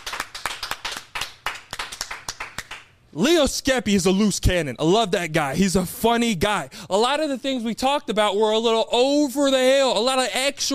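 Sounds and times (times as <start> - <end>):
hands clapping: 0.0 - 3.0
speech: 3.1 - 10.7.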